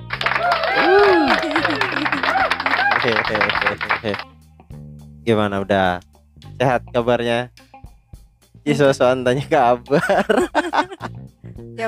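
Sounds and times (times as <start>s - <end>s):
crowd clapping hands: 0.0s - 4.3s
laughter: 0.4s - 4.2s, 9.4s - 11.1s
speech: 3.0s - 4.3s, 5.2s - 7.6s, 8.6s - 11.8s.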